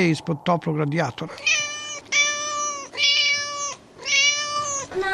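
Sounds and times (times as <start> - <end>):
speech: 0.0 - 1.8
cat meowing: 1.3 - 5.0.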